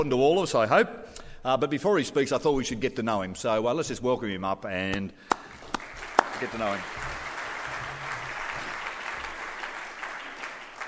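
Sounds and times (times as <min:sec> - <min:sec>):
speech: 0:00.0 - 0:05.5, 0:06.4 - 0:07.1
audience applause: 0:05.3 - 0:10.8.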